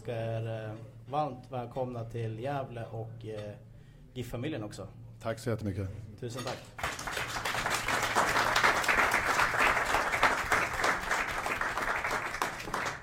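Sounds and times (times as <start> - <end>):
speech: 0.0 - 7.0
audience applause: 6.8 - 13.0.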